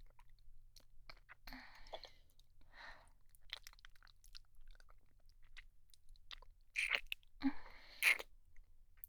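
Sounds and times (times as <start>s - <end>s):
deep kissing with saliva ASMR: 6.8s - 7.1s, 8.0s - 8.3s.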